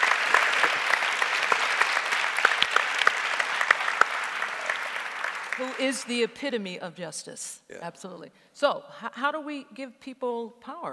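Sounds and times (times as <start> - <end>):
audience applause: 0.0 - 6.1
speech: 5.6 - 10.9.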